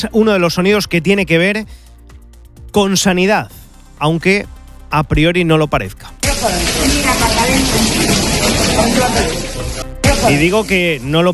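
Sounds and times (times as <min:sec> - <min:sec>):
speech: 0:00.0 - 0:01.8, 0:02.8 - 0:09.5, 0:10.2 - 0:11.3
rainwater pouring, flooding a hospital: 0:06.2 - 0:11.0.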